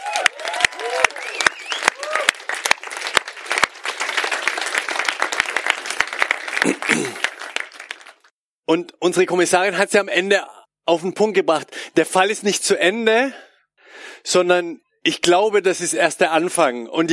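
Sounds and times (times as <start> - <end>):
audience applause: 0.0 - 8.3
speech: 6.7 - 7.2, 8.7 - 13.5, 14.2 - 17.1.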